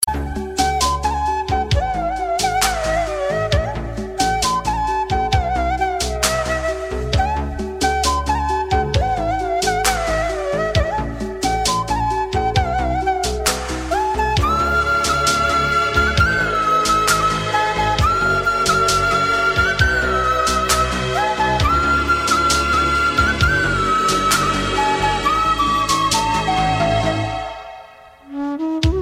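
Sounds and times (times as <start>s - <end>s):
light music: 0.0s - 29.0s.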